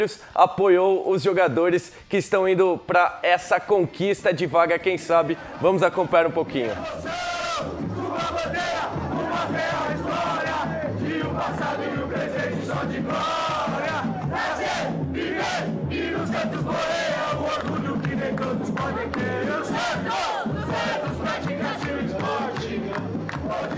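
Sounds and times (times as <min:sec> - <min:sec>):
speech: 0:00.0 - 0:07.8
football supporters chanting and cheering: 0:05.1 - 0:23.7.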